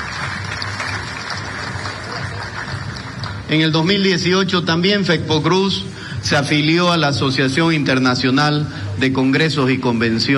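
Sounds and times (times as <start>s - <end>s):
audience applause: 0.0s - 3.8s
speech: 3.5s - 10.3s.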